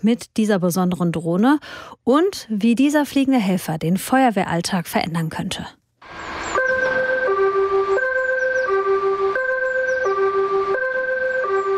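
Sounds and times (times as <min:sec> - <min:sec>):
speech: 0:00.0 - 0:06.3
fire station alarm gong two-tone signal: 0:06.0 - 0:11.7.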